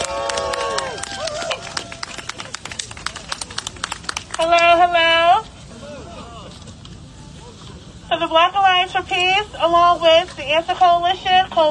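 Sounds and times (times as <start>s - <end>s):
audience applause welcoming a speaker at a peace rally in Washington: 0.0s - 4.4s
speech: 8.3s - 11.6s.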